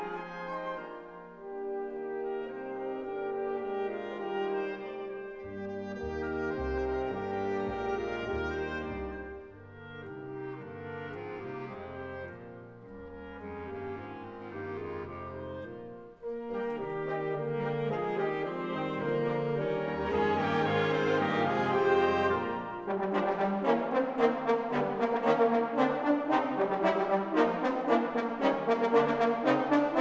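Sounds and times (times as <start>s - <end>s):
classical music: 0.0s - 29.9s.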